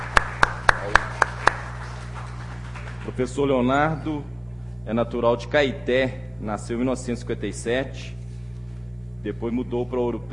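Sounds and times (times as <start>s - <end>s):
hand claps at an honorary citizenship ceremony in Ouro Preto: 0.0s - 3.3s
speech: 3.1s - 8.2s, 9.2s - 10.3s.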